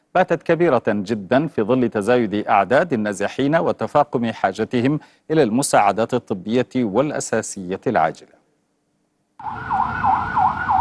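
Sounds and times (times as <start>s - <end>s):
speech: 0.2s - 8.4s, 9.4s - 10.1s
ambulance siren wailing in the streets of Sidon, southern Lebanon: 9.4s - 10.7s.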